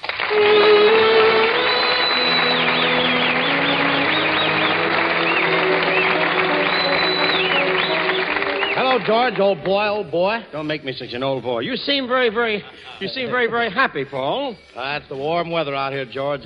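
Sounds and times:
audience clapping at a tribute to an American music figure: 0.0s - 10.2s
speech: 9.0s - 16.4s.

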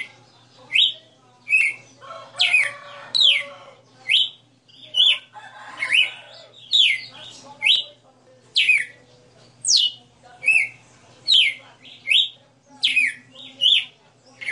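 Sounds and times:
female red-cowled cardinal singing whistled phrases: 0.7s - 1.9s, 2.5s - 5.2s, 5.9s - 7.9s, 8.6s - 9.0s, 9.6s - 14.5s.

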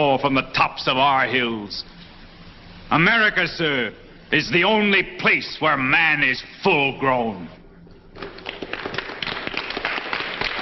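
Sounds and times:
speech: 0.0s - 2.0s, 2.9s - 7.6s
applause: 8.2s - 10.6s.

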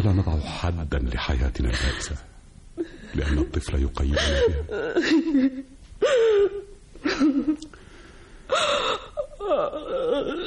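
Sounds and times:
speech: 0.1s - 7.8s, 8.5s - 10.4s
woman crying: 4.2s - 7.6s, 8.5s - 10.4s.

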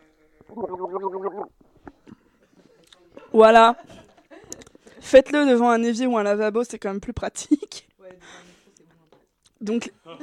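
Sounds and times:
person gargling liquid with head tilted back: 0.4s - 1.6s
faint wet clicks and mouth sounds: 0.4s - 2.2s
speech: 0.5s - 1.6s, 3.4s - 4.0s, 5.1s - 8.4s, 9.6s - 10.2s.

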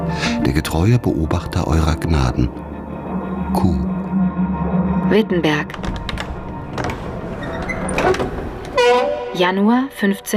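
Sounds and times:
speech: 0.1s - 2.7s, 3.5s - 4.0s, 5.1s - 5.9s, 8.0s - 8.4s, 9.3s - 10.3s
old church door barely hanging on its hinges pushed open: 5.6s - 9.5s.

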